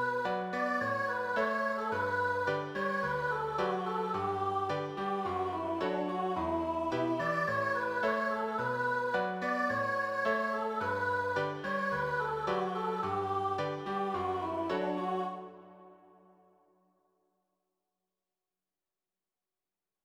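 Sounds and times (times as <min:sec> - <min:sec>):
musical accompaniment: 0:00.2 - 0:16.0.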